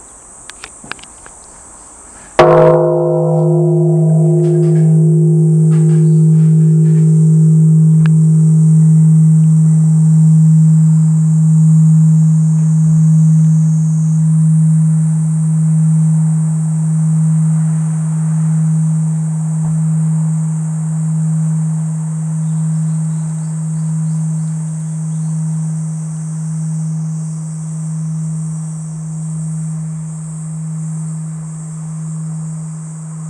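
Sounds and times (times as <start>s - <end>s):
Buddhist temple bell ringing: 2.4s - 27.0s.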